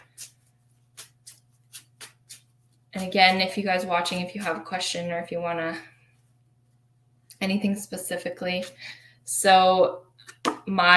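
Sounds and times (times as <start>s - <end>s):
Chakra Healing Oracle cards being shuffled and pulled: 0.0s - 2.8s
low steady hum: 0.0s - 10.9s
speech: 3.0s - 5.9s, 7.4s - 10.9s.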